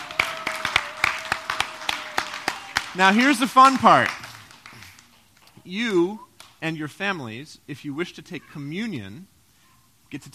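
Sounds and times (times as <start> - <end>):
audience applause: 0.0 - 5.4
speech: 3.0 - 4.2, 5.6 - 9.3, 10.1 - 10.3.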